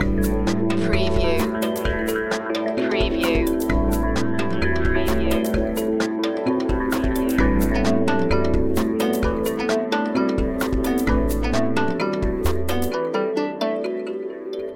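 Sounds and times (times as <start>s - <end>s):
music loop: 0.0s - 14.7s.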